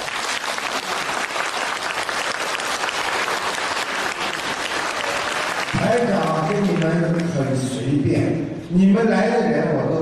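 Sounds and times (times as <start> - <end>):
audience applause: 0.0 - 7.5
speech: 5.9 - 10.0.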